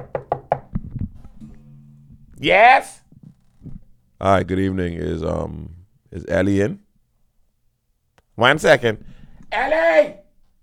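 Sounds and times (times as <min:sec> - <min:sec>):
knocking on a house door: 0:00.0 - 0:00.9
speech: 0:02.4 - 0:03.0, 0:04.2 - 0:06.8, 0:08.4 - 0:10.2.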